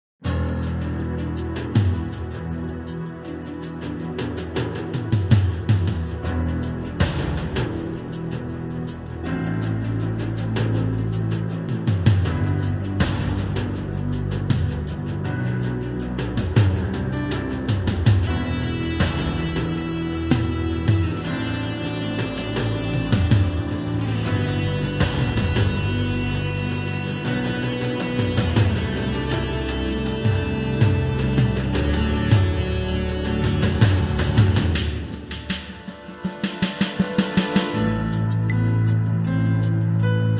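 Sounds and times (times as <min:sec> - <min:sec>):
battle music: 0:00.3 - 0:40.3.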